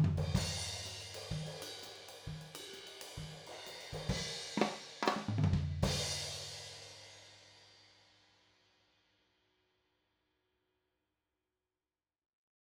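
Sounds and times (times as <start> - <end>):
drum recorded with overhead Blumlein microphones: 0.0 - 6.8.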